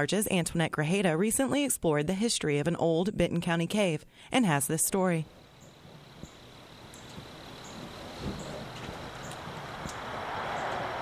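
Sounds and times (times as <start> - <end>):
speech: 0.0 - 5.4
cars flying by along Highway 59 north of Gravette: 6.5 - 10.9.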